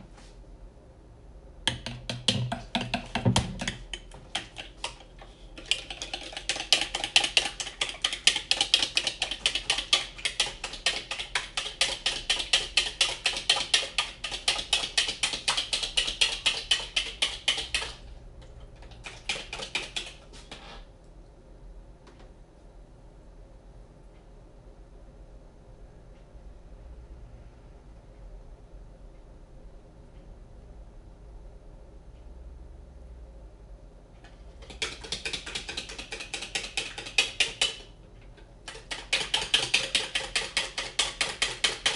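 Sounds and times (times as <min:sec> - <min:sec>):
clicking and scraping while making banana bread: 0:02.0 - 0:20.9, 0:34.3 - 0:41.9.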